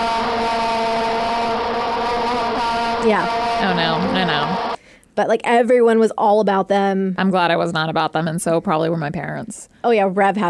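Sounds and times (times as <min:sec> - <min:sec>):
plastic spinning noisemaker toy blown into: 0:00.0 - 0:04.8
speech: 0:03.0 - 0:10.4.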